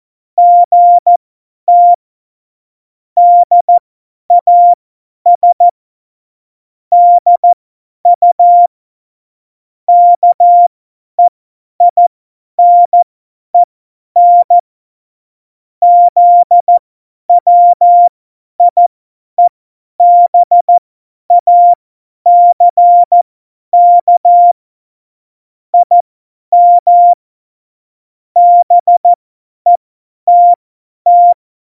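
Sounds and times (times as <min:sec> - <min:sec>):
CW Morse code beeps: 0:00.4 - 0:02.0, 0:04.4 - 0:04.8, 0:05.4 - 0:05.7, 0:06.9 - 0:07.6, 0:08.2 - 0:08.7, 0:09.9 - 0:12.0, 0:12.6 - 0:13.0, 0:13.6 - 0:14.6, 0:15.8 - 0:16.8, 0:17.4 - 0:18.8, 0:19.4 - 0:23.2, 0:23.8 - 0:24.6, 0:25.8 - 0:27.2, 0:28.4 - 0:31.4.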